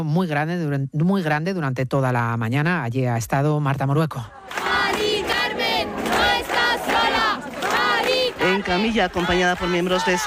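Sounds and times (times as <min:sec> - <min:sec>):
speech: 0:00.0 - 0:04.4, 0:08.6 - 0:10.2
hundreds of people shouting in street: 0:04.3 - 0:10.2.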